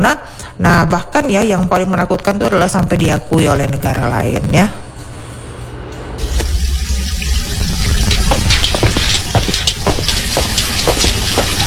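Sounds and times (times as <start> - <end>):
speech: 0.0 - 4.8
PDAM mains water gushing from a tap opened wide: 6.2 - 11.6.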